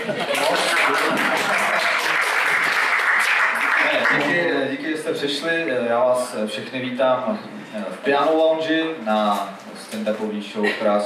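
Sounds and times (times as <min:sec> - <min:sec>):
audience applause: 0:00.0 - 0:04.5
speech: 0:05.2 - 0:11.0.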